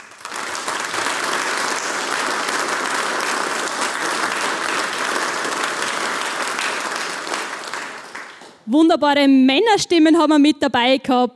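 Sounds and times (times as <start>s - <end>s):
audience clapping: 0.0s - 8.7s
speech: 8.7s - 11.3s.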